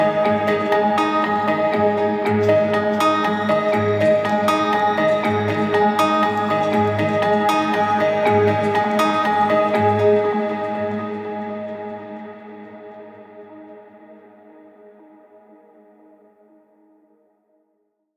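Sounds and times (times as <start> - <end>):
guitar arpeggio in A-flat major: 0.0 - 13.6.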